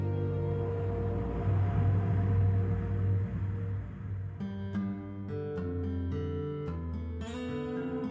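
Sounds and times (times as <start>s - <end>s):
music: 0.0s - 8.0s.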